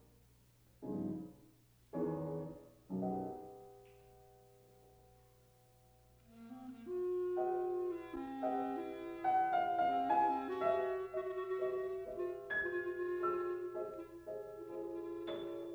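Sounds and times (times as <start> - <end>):
piano: 0.0 - 15.7
clarinet: 6.2 - 15.7.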